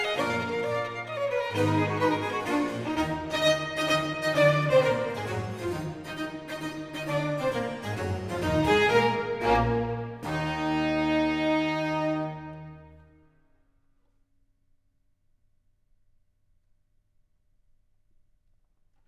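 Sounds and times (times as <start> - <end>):
violin in E minor: 0.0 - 13.2
strings and continuo: 0.0 - 13.4.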